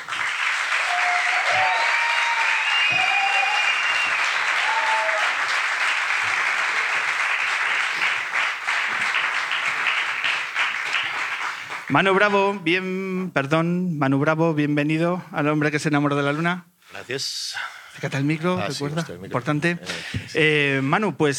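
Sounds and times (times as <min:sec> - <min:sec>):
applause: 0:00.0 - 0:12.3
speech: 0:11.9 - 0:21.3.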